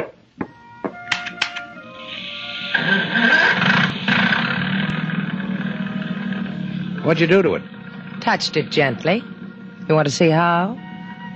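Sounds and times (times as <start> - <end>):
boat motor starting and running: 2.7 - 11.3
speech: 7.1 - 9.3, 9.9 - 10.8.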